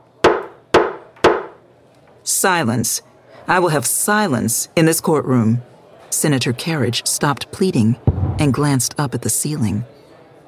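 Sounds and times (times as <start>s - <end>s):
speech: 2.3s - 10.0s
gavel slammed down: 8.1s - 8.7s.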